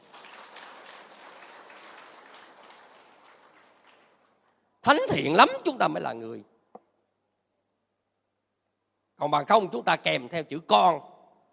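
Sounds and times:
audience applause during a Vietnamese Buddhist talk on repentance: 0:00.0 - 0:04.5
speech: 0:04.8 - 0:06.5, 0:09.2 - 0:11.1.

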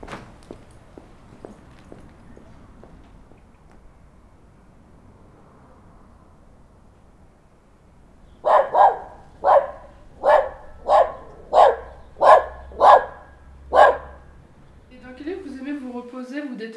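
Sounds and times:
dog barking: 0:00.0 - 0:15.6.

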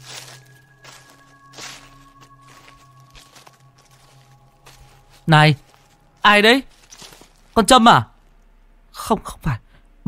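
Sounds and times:
footsteps: 0:00.0 - 0:07.6
speech: 0:05.3 - 0:06.7, 0:07.6 - 0:08.1, 0:09.1 - 0:10.0.

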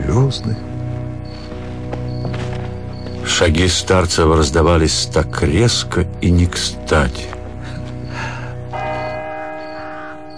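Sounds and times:
speech: 0:00.2 - 0:00.7, 0:03.3 - 0:07.4
church clock bell striking: 0:08.7 - 0:10.3.

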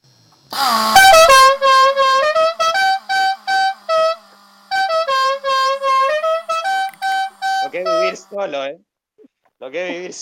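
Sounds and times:
musical car horn: 0:00.6 - 0:08.4
speech: 0:08.4 - 0:08.9, 0:09.6 - 0:10.2.

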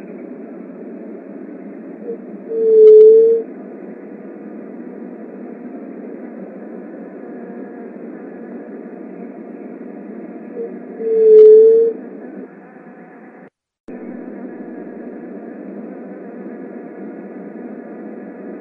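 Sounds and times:
Leptotila dove soft hollow hoot: 0:02.0 - 0:03.5, 0:10.5 - 0:12.0.

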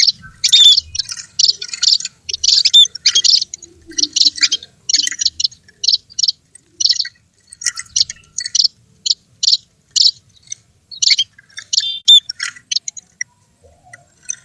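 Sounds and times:
bird chirping and twittering: 0:00.0 - 0:14.4.

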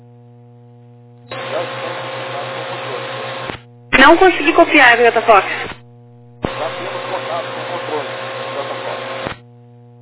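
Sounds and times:
radio carrier without voice: 0:01.3 - 0:05.8, 0:06.4 - 0:09.4
speech: 0:04.1 - 0:05.7.

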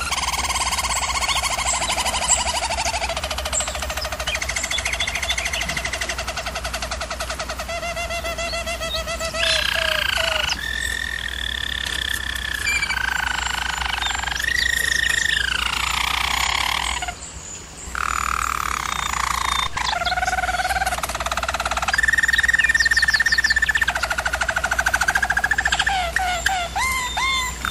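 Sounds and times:
German Roller canary singing: 0:00.0 - 0:17.2, 0:18.0 - 0:27.7.

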